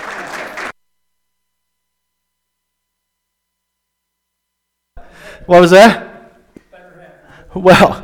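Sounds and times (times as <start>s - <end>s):
audience applause: 0.0s - 0.8s
speech: 5.4s - 6.1s, 7.6s - 8.0s.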